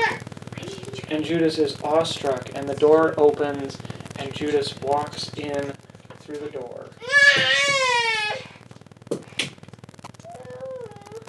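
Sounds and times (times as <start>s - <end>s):
speech: 1.1s - 7.9s
small child crying: 7.0s - 8.5s, 10.2s - 11.2s.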